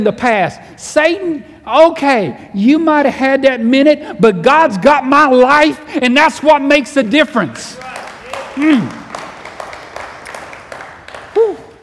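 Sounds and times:
speech: 0:00.0 - 0:08.0, 0:08.6 - 0:09.0
audience clapping: 0:07.6 - 0:11.8.

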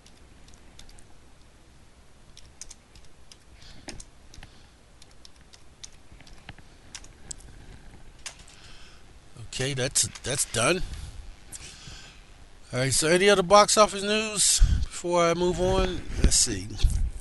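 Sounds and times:
typing a message on a computer keyboard: 0:00.0 - 0:01.1, 0:02.3 - 0:07.4
soft hiss: 0:00.0 - 0:17.1
speech: 0:09.6 - 0:11.0, 0:12.7 - 0:16.9.

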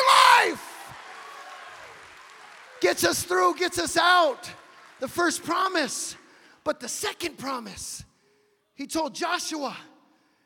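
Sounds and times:
crowd, audience clapping hands: 0:00.0 - 0:06.5
speech: 0:02.8 - 0:08.1, 0:08.8 - 0:09.9.

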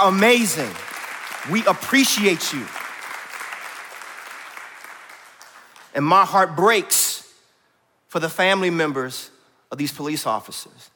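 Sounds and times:
speech: 0:00.0 - 0:02.8, 0:06.0 - 0:07.1, 0:08.1 - 0:10.9
audience clapping: 0:00.0 - 0:06.1.

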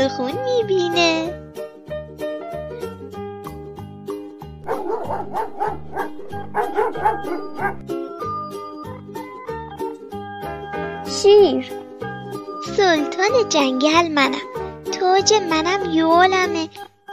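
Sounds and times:
speech: 0:00.0 - 0:01.4, 0:05.1 - 0:08.0, 0:11.2 - 0:11.8, 0:12.7 - 0:14.5, 0:15.1 - 0:17.1
dog barking: 0:04.6 - 0:07.8.

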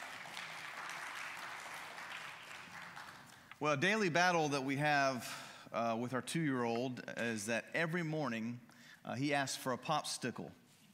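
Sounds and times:
audience applause: 0:00.0 - 0:03.5
speech: 0:03.6 - 0:10.6.

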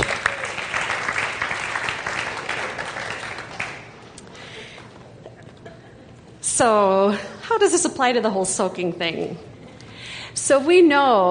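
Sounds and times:
audience applause: 0:00.0 - 0:05.0
speech: 0:06.6 - 0:09.5, 0:10.4 - 0:11.2.

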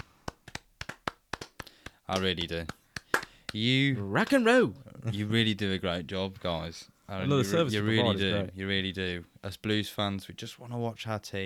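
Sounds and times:
round of applause: 0:00.0 - 0:03.6
speech: 0:02.1 - 0:02.8, 0:03.5 - 0:11.4.

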